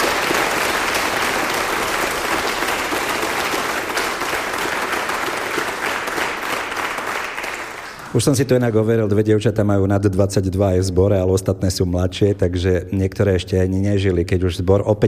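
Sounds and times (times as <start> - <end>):
audience applause for a choir: 0.0 - 8.4
speech: 8.2 - 15.0.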